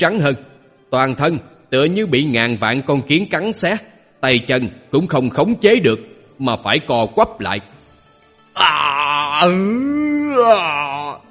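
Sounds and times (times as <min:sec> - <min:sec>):
speech: 0:00.0 - 0:07.7, 0:08.6 - 0:10.8
man groaning and growling in pain: 0:08.6 - 0:11.2.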